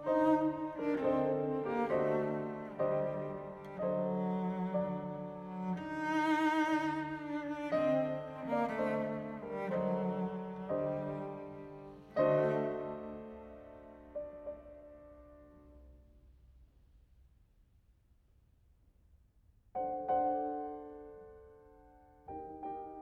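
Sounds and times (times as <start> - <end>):
cello: 0.0 - 15.9, 22.2 - 23.0
piano: 0.0 - 17.8, 19.5 - 23.0.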